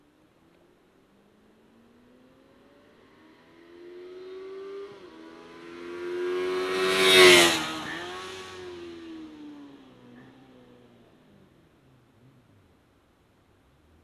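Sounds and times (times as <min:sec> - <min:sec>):
CBX passing: 0:03.1 - 0:09.3.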